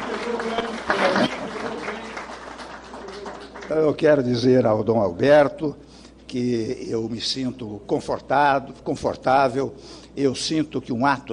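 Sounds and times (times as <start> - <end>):
murmuring voices: 0.0 - 2.3
audience applauding: 0.0 - 4.2
speech: 3.7 - 11.3.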